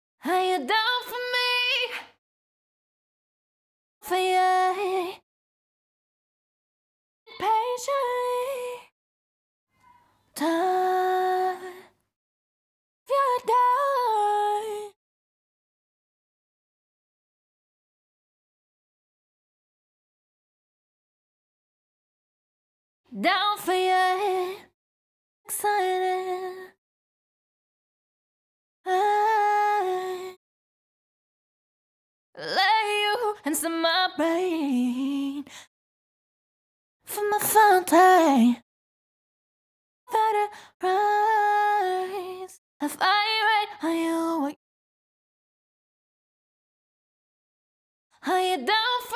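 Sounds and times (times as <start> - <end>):
a cappella pop vocals: 0.2 - 2.2, 4.0 - 5.2, 7.3 - 8.9, 9.8 - 12.0, 13.1 - 15.0, 23.1 - 24.8, 25.5 - 26.8, 28.9 - 30.4, 32.4 - 35.7, 37.1 - 38.7, 40.1 - 44.6, 48.2 - 49.1.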